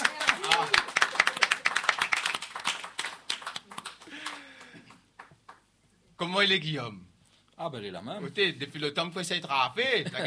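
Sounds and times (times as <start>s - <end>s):
audience applause: 0.0s - 5.6s
speech: 6.2s - 10.2s.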